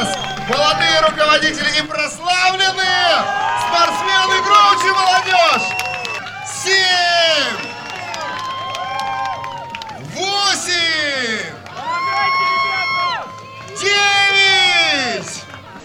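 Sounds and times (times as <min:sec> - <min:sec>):
crowd cheering and clapping: 0:00.0 - 0:15.8
speech: 0:00.5 - 0:05.9.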